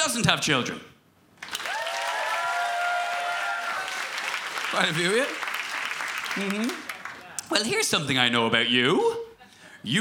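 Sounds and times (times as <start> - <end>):
speech: 0.1 - 0.9, 4.7 - 5.4, 6.4 - 6.9, 7.5 - 9.2, 9.8 - 10.0
audience applause: 1.4 - 7.4
person whooping: 1.7 - 4.0.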